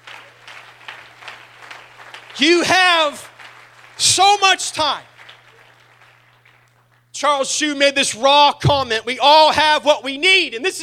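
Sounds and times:
audience clapping hands: 0:00.0 - 0:07.1
speech: 0:02.4 - 0:03.3, 0:04.0 - 0:05.1, 0:07.2 - 0:10.8.

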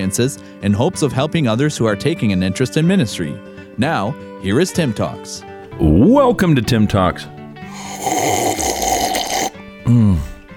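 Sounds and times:
speech: 0:00.0 - 0:08.7, 0:09.9 - 0:10.3
slurping a drink: 0:07.7 - 0:09.6.

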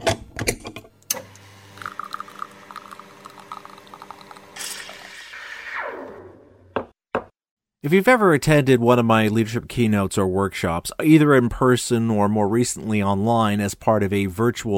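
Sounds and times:
espresso machine brewing: 0:01.1 - 0:05.5
speech: 0:07.8 - 0:14.7.

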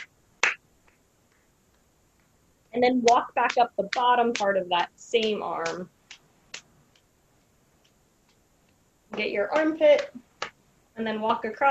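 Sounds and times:
light hand clapping during a self-tapping body exercise: 0:00.0 - 0:02.3, 0:03.1 - 0:07.1, 0:07.8 - 0:10.6
speech: 0:02.8 - 0:06.0, 0:09.2 - 0:10.3, 0:11.0 - 0:11.7.

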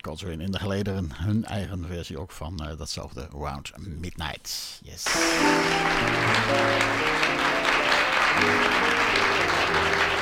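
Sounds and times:
speech: 0:00.0 - 0:10.0
audience applause: 0:05.1 - 0:10.2.

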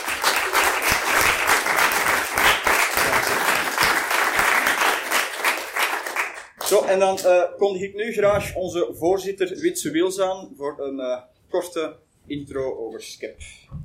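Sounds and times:
crowd applause: 0:00.0 - 0:06.8
speech: 0:06.7 - 0:13.7.

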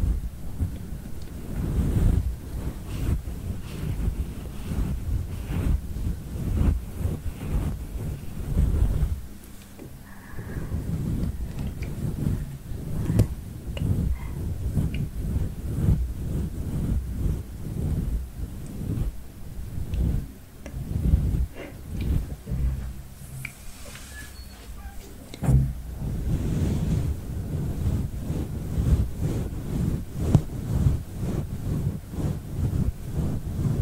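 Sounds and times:
rubbing and scratching of hair and scalp in a head massage: 0:00.0 - 0:33.8.

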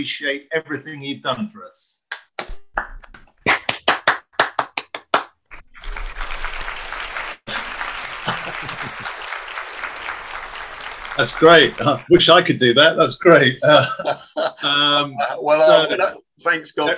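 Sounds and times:
speech: 0:00.0 - 0:02.0, 0:11.2 - 0:16.9
audience applause with sharp handclaps: 0:03.6 - 0:12.4
laughter: 0:07.5 - 0:12.4, 0:13.2 - 0:16.2.

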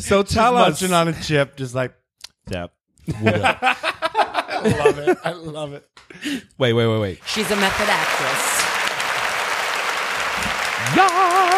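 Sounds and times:
speech: 0:00.0 - 0:04.0, 0:04.6 - 0:08.7, 0:10.8 - 0:11.5
laughter: 0:03.1 - 0:05.7
crowd applause: 0:07.2 - 0:11.5.

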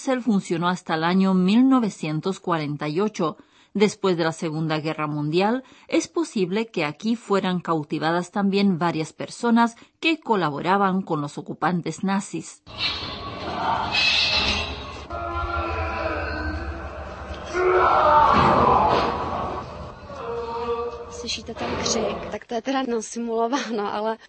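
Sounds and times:
speech: 0:00.0 - 0:14.6, 0:21.2 - 0:24.2
staged scream of a tortured prisoner: 0:12.9 - 0:21.9
choppy sobbing shouts: 0:15.1 - 0:21.2.

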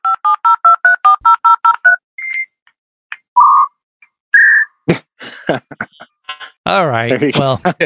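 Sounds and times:
telephone touch-tone dialing beeps: 0:00.1 - 0:02.6
laughter: 0:04.9 - 0:06.1, 0:07.2 - 0:07.8
speech: 0:06.7 - 0:07.8.

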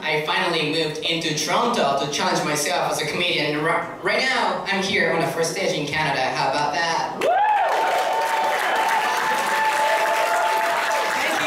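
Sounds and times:
speech: 0:00.1 - 0:07.4
audience applause: 0:07.2 - 0:11.4.

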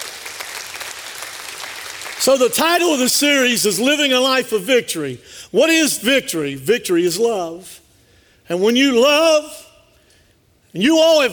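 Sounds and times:
audience applause, hand clapping: 0:00.0 - 0:02.3
speech: 0:02.2 - 0:07.8, 0:08.5 - 0:09.6, 0:10.8 - 0:11.3.

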